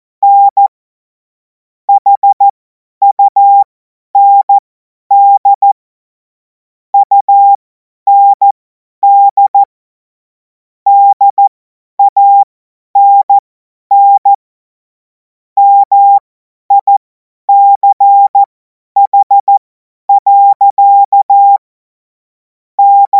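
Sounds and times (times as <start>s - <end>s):
CW Morse code beeps: 0.2s - 0.7s, 1.9s - 5.8s, 7.0s - 9.7s, 10.9s - 14.4s, 15.6s - 21.6s, 22.8s - 23.1s.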